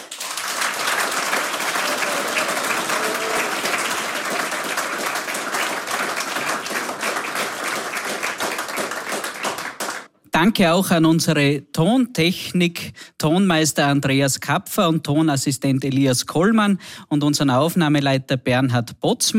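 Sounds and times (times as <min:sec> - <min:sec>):
large audience applause: 0:00.0 - 0:10.1
speech: 0:10.4 - 0:19.3.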